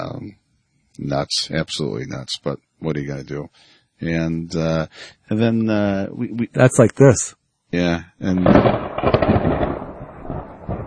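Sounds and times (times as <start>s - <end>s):
speech: 1.0s - 9.8s
thunder rumbling during a thunderstorm: 8.4s - 10.8s.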